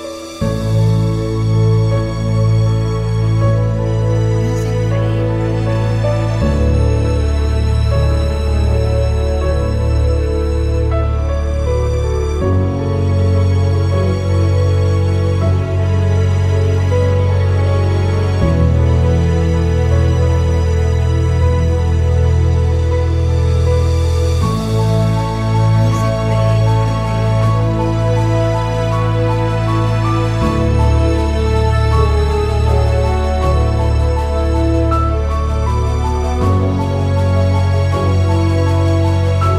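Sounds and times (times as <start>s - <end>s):
inspiring emotional strings and piano music: 0.0s - 39.5s.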